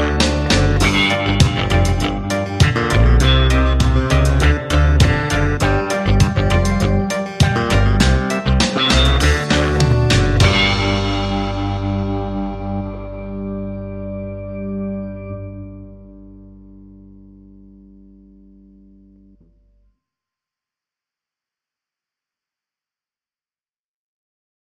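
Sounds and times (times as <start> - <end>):
Caribbean reggae music: 0.0 - 18.0.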